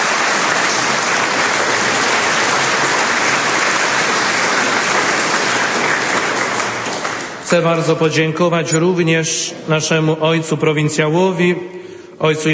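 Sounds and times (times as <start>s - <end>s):
audience applause: 0.0s - 7.5s
speech: 7.5s - 12.5s.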